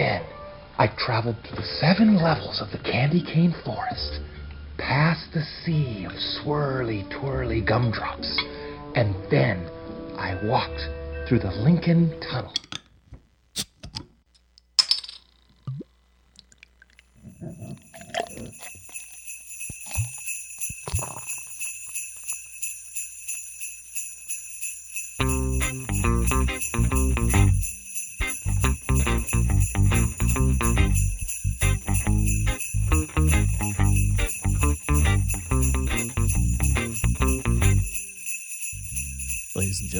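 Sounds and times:
speech: 0.0 - 12.8
sleigh bells jingling: 17.3 - 39.9.

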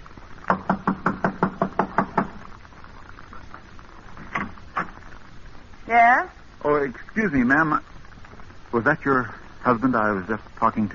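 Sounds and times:
knocking on a door: 0.5 - 2.4
speech: 5.9 - 7.9, 8.7 - 10.9.

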